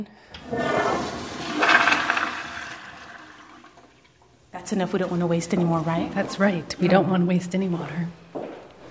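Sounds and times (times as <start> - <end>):
speech: 0.0 - 1.2, 4.7 - 8.2
toilet flushing: 0.2 - 4.5.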